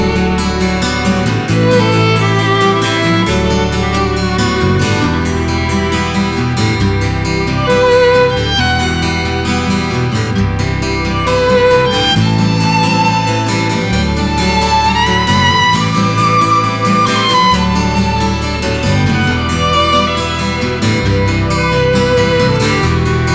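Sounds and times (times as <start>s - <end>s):
guitar played violin style: 0.0s - 23.3s.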